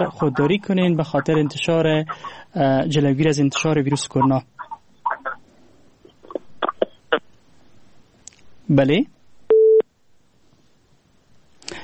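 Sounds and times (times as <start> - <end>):
speech: 0.0 - 4.5, 8.7 - 9.2
phone busy tone after a listener's call was cut off: 9.5 - 9.8.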